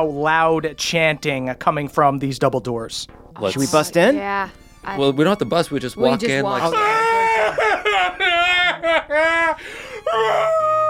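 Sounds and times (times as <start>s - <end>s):
speech: 0.0s - 10.8s
laughter: 6.5s - 10.8s
voice imitating a beast crying and screaming: 6.6s - 7.6s, 10.1s - 10.8s.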